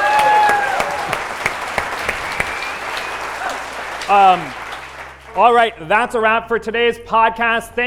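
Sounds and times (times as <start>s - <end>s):
audience applause: 0.0s - 5.7s
speech: 4.1s - 4.6s, 5.4s - 7.8s.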